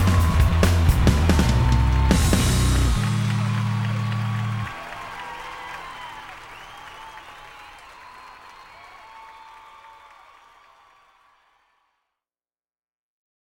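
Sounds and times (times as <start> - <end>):
music in B minor at 74 bpm: 0.0 - 5.2.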